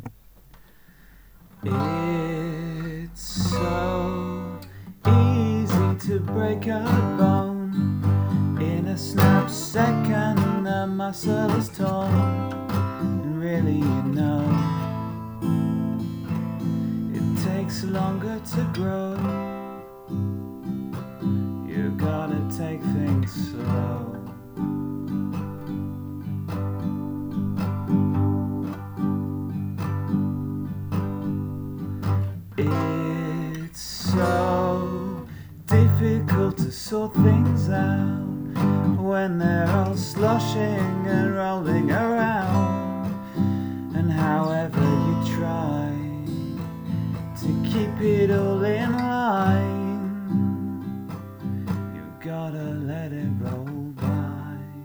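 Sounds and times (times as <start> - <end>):
slow song: 0.0 - 54.8.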